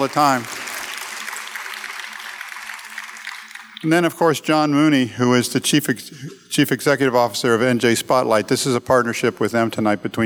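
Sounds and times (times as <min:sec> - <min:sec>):
speech: 0:00.0 - 0:00.6, 0:03.8 - 0:10.2
audience applause: 0:00.0 - 0:04.2.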